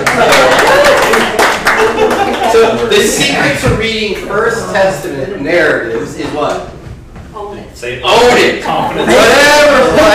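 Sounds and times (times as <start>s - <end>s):
audience applause: 0.0s - 2.9s
laughter: 0.0s - 3.6s, 8.7s - 10.1s
speech: 3.0s - 6.7s, 7.8s - 10.1s.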